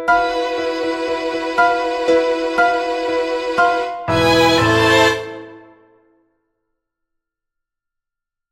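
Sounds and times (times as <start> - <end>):
soprano singing: 0.1 - 5.8.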